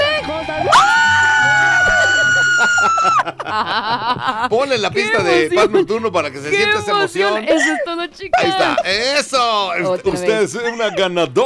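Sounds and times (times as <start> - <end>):
woman screaming with excitement: 0.7 - 3.2
laughter: 1.6 - 6.3, 7.1 - 11.4
speech: 3.5 - 11.4.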